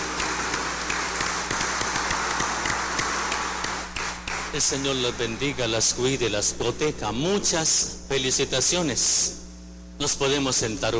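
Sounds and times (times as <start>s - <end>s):
applause: 0.0s - 5.4s
speech: 4.6s - 9.4s, 10.0s - 10.9s.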